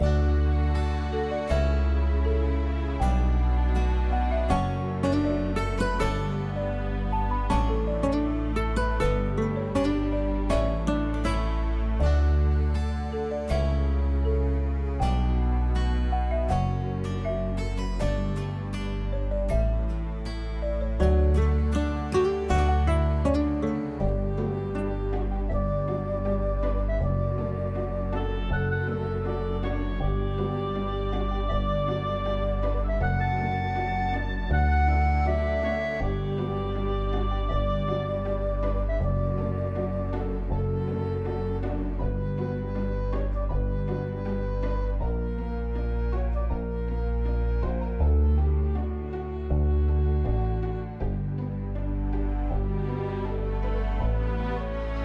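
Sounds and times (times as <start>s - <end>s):
oboe: 0.0s - 55.0s.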